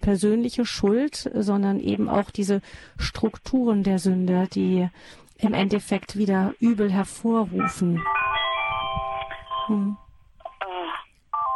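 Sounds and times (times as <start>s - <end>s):
speech: 0.0s - 8.2s, 9.7s - 10.0s
telephone ringing with electronic tones: 7.6s - 11.5s.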